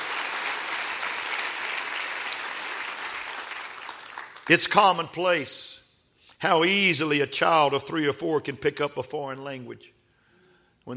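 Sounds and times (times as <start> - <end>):
audience clapping hands: 0.0 - 4.8
speech: 4.5 - 5.8, 6.4 - 10.0.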